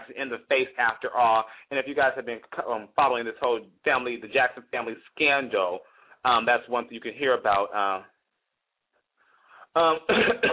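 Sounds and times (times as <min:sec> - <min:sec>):
speech: 0:00.1 - 0:08.1, 0:09.8 - 0:10.5
person coughing and clearing throat: 0:09.8 - 0:10.5.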